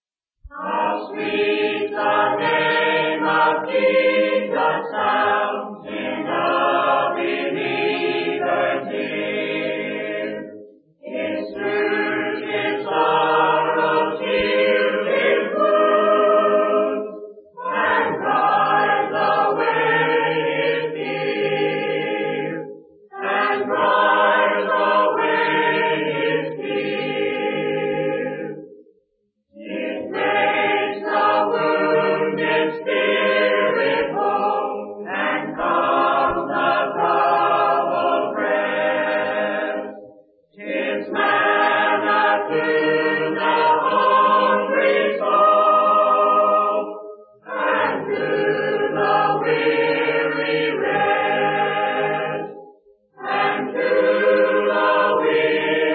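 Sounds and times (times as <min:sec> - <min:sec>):
a cappella hymn: 0:00.5 - 0:28.7, 0:29.6 - 0:55.9.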